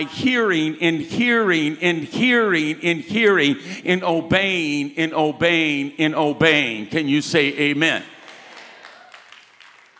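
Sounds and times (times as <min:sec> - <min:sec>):
speech: 0:00.0 - 0:08.2
light polite golf clap: 0:08.2 - 0:09.9.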